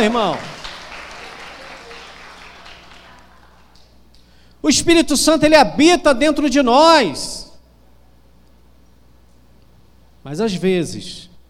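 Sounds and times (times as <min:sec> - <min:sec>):
speech: 0:00.0 - 0:00.6, 0:04.6 - 0:07.4, 0:10.2 - 0:11.3
audience applauding: 0:00.0 - 0:04.0.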